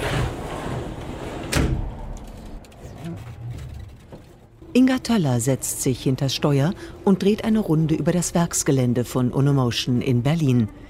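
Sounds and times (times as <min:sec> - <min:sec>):
sliding door of cargo bike container rolling and banging: 0:00.0 - 0:04.6
speech: 0:04.8 - 0:10.8.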